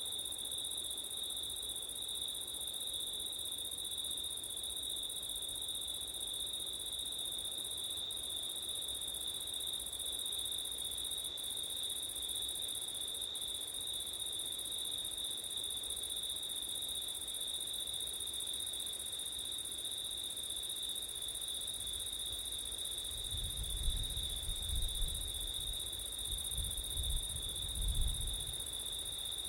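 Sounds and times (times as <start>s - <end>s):
hiss: 0.0s - 29.4s
cricket chorus trilling: 18.4s - 29.4s
low wind gusts: 23.3s - 28.6s.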